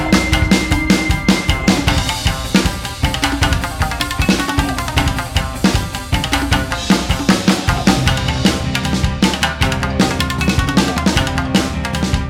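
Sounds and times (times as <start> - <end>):
shamisen samurai rock music: 0.0 - 12.2.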